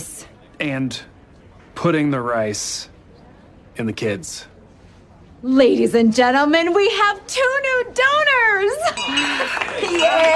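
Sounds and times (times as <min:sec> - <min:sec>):
speech: 0:00.6 - 0:01.1, 0:01.8 - 0:02.9, 0:03.8 - 0:04.5, 0:05.4 - 0:10.3
bell ringing: 0:08.8 - 0:10.3.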